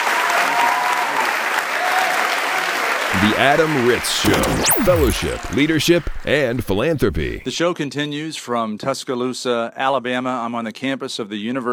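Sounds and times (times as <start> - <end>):
round of applause: 0.0 - 3.1
speech: 3.2 - 11.7.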